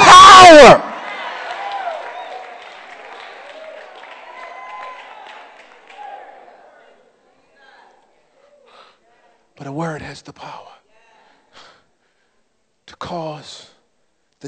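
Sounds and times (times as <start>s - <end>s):
audience shouting and applauding: 0.0s - 6.9s
speech: 9.8s - 10.7s, 13.0s - 13.7s.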